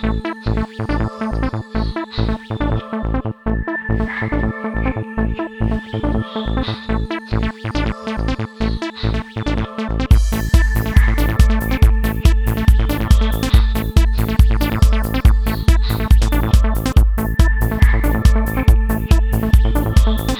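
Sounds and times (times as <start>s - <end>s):
trance synth music: 0.0s - 20.3s.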